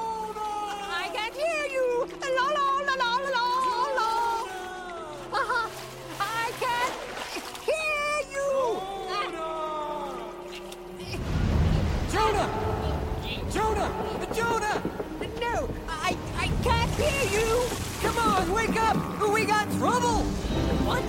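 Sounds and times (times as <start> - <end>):
tonal music-like sounds: 0.0 - 21.0
heavy low rumble: 11.0 - 19.2
storm at sea with crashing water, boat in rough water: 11.0 - 21.0.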